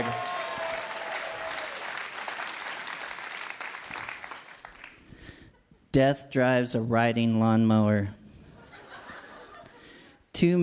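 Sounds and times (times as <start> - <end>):
crowd applause: 0.0 - 5.0
speech: 6.0 - 8.2, 10.4 - 10.6
laughter: 8.6 - 9.9.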